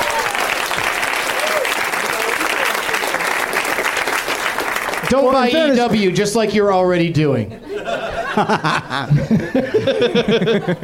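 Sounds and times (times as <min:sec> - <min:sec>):
audience applause: 0:00.0 - 0:05.7
speech: 0:05.1 - 0:07.6, 0:08.4 - 0:10.8
laughter: 0:07.5 - 0:10.8.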